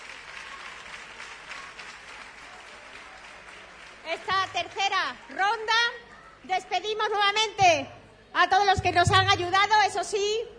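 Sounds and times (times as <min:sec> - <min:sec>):
applause: 0:00.0 - 0:06.0
speech: 0:04.1 - 0:10.5.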